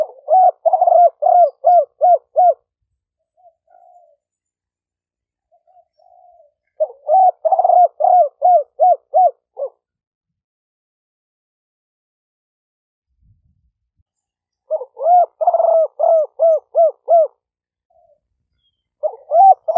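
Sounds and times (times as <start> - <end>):
dove hooting: 0.0 - 2.7, 3.3 - 4.3, 5.5 - 9.9, 14.7 - 18.2, 19.0 - 19.7.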